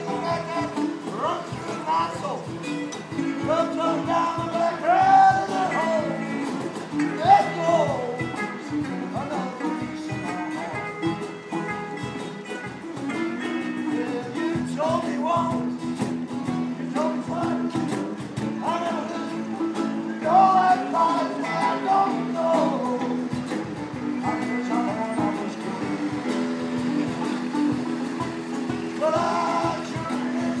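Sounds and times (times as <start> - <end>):
person singing the blues outside the office: 0.0 - 30.5.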